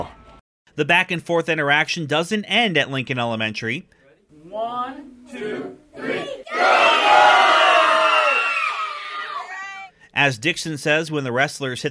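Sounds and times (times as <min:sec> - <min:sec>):
speech: 0:00.8 - 0:07.8, 0:10.2 - 0:11.8
children cheering and shouting: 0:06.0 - 0:09.9.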